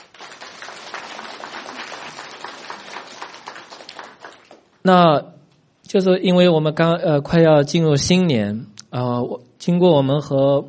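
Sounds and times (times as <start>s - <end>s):
audience applauding: 0.0s - 4.7s
speech: 4.8s - 5.3s, 5.9s - 10.6s.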